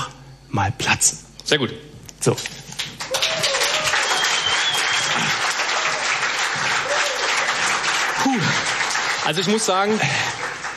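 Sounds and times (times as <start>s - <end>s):
speech: 0.5s - 2.7s, 9.3s - 10.4s
applause: 2.7s - 10.7s.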